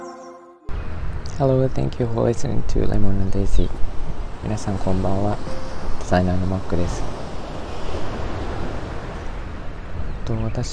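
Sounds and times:
speech: 0:01.4 - 0:07.2, 0:10.3 - 0:10.7
ocean waves at the seaside: 0:03.8 - 0:10.2.

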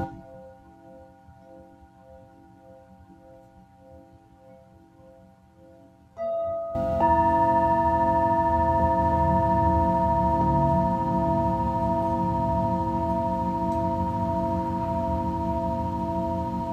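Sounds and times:
Tibetan singing bowl ringing: 0:00.0 - 0:16.7.

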